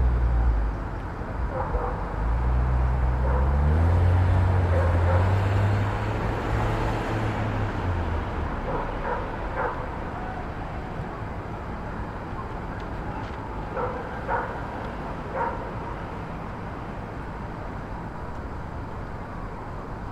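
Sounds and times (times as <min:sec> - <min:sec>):
city hum in Brooklyn: 0:00.0 - 0:20.1
vehicle passing on a Brooklyn street: 0:02.2 - 0:09.3.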